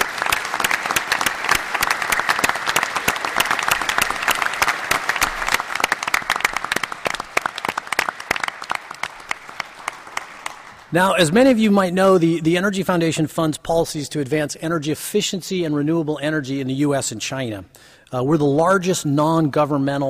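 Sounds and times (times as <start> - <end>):
audience applause: 0.0 - 11.4
speech: 10.9 - 20.0.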